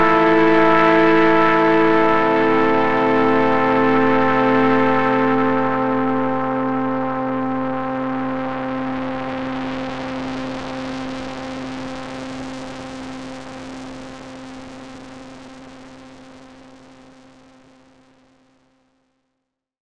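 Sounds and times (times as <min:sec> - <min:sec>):
synthesizer pad: 0:00.0 - 0:13.6.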